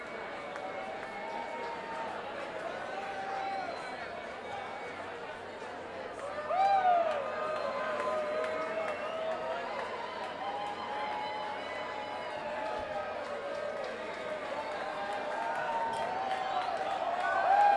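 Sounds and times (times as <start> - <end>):
crowd noise: 0.0 - 17.7.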